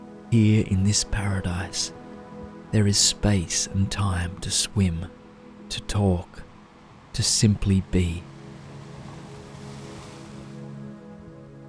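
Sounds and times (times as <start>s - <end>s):
speech: 0.3s - 2.0s, 2.7s - 6.5s, 7.2s - 8.3s
ocean waves washing along a beach: 5.2s - 11.6s.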